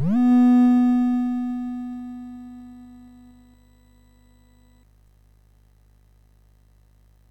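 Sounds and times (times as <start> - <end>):
game music on MOS6581R4 SID chip: 0.0 - 3.4.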